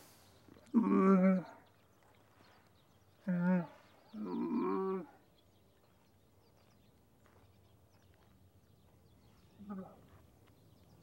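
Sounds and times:
camel long moan: 0.6 - 1.6, 3.2 - 5.2.

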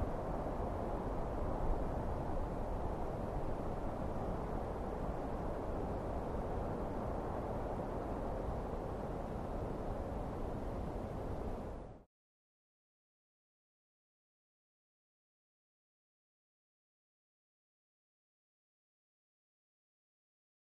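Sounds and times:
cold mountain night wind: 0.0 - 12.1.

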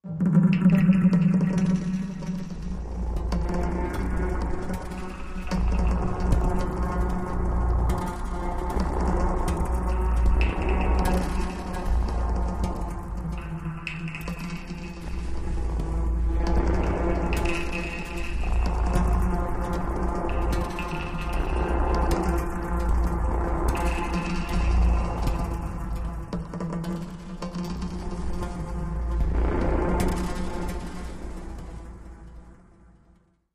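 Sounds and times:
eerie ambience: 0.1 - 33.1.

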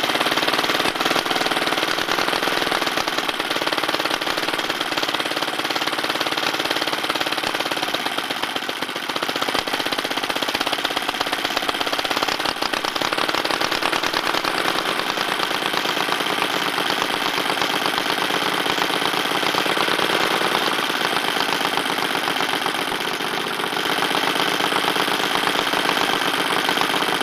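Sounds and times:
old motorbike idling and switching off: 0.0 - 27.2.

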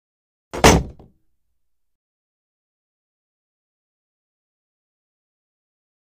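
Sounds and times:
sword deep dull metal into wood impact: 0.6 - 1.1.

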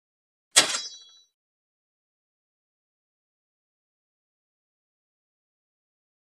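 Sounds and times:
sword scraping on armor with fast metallic shing and ring: 0.6 - 1.2.

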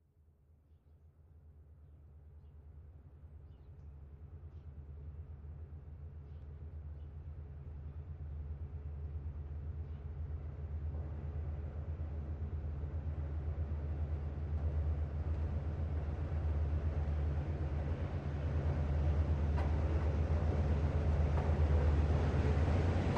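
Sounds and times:
distant steam train passing low: 9.8 - 23.1.

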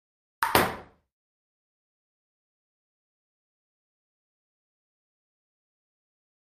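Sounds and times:
ping pong ball serve: 0.4 - 1.0.

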